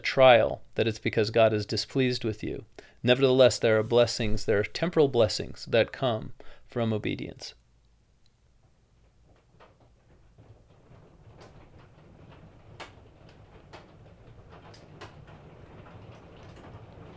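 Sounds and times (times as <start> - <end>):
speech: 0.1 - 7.6
hail falling during a hailstorm: 9.4 - 17.1.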